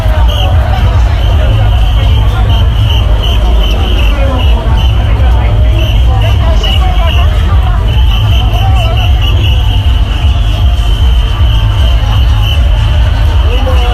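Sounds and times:
dense Halloween crowd babble in Shibuya: 0:00.0 - 0:13.9.

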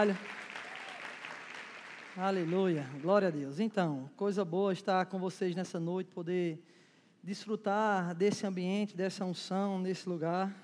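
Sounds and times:
speech: 0:00.0 - 0:00.4, 0:02.2 - 0:10.6
audience applause: 0:00.0 - 0:03.4.

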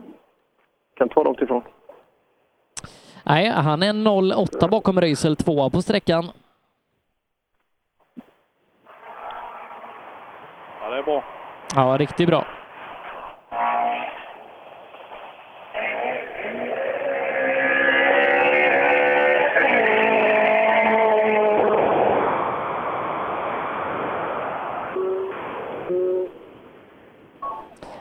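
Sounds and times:
speech: 0:01.0 - 0:01.8, 0:03.3 - 0:06.4, 0:11.0 - 0:12.6
rally cars driving past on stage: 0:08.9 - 0:11.7, 0:12.5 - 0:26.0.

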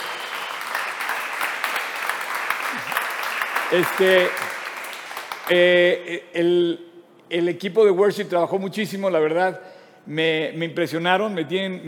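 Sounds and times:
crowd applauding for worship team: 0:00.0 - 0:05.7
speech: 0:03.7 - 0:04.5, 0:05.5 - 0:11.8.

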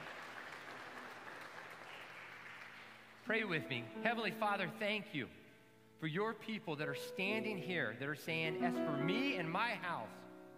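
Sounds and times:
audience applause: 0:00.0 - 0:03.2
speech: 0:03.3 - 0:05.4, 0:06.0 - 0:10.2.

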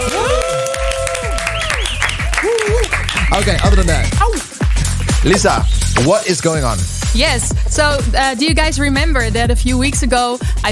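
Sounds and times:
cheering: 0:00.0 - 0:04.4
group applauding: 0:00.0 - 0:06.0
speech: 0:03.4 - 0:04.4, 0:05.2 - 0:10.6.

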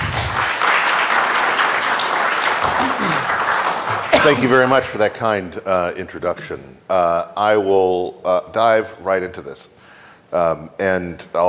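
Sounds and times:
audience applause for panelists: 0:00.0 - 0:04.8
speech: 0:04.2 - 0:11.4.

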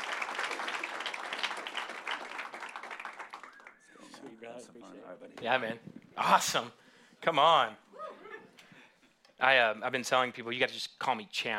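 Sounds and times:
audience applause welcoming a pastor onto the stage: 0:00.0 - 0:03.9
speech: 0:04.6 - 0:07.9, 0:09.4 - 0:11.5.

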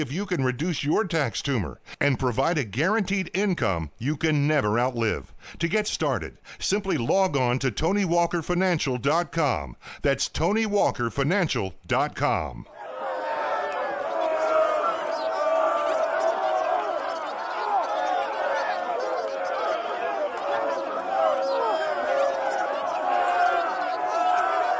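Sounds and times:
speech: 0:00.0 - 0:12.8
crowd chatter: 0:12.7 - 0:24.7.

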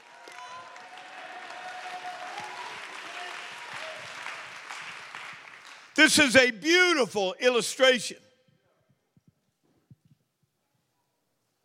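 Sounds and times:
church congregation clapping and making noise in praise: 0:00.0 - 0:08.0
speech: 0:06.0 - 0:08.2.

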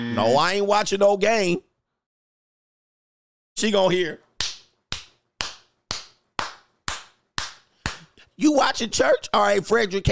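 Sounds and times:
speech: 0:00.0 - 0:01.7, 0:03.6 - 0:04.2, 0:08.4 - 0:10.1
hand claps: 0:04.3 - 0:08.3.

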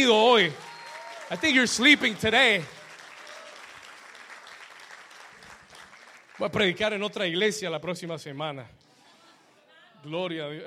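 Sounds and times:
speech: 0:00.0 - 0:00.7, 0:01.3 - 0:02.8, 0:06.4 - 0:08.8, 0:10.0 - 0:10.6
audience applause: 0:00.0 - 0:06.8.

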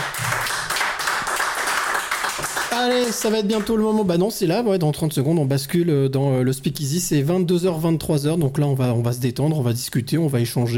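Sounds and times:
audience applause: 0:00.0 - 0:03.7
speech: 0:02.8 - 0:10.7.

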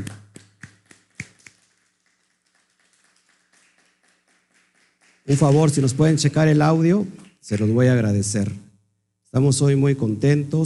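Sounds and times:
applause: 0:00.0 - 0:06.6
speech: 0:05.3 - 0:08.7, 0:09.3 - 0:10.6.

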